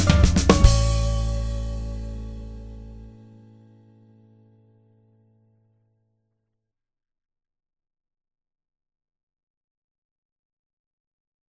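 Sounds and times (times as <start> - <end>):
power shuffle drum backbeat: 0.0 - 2.0.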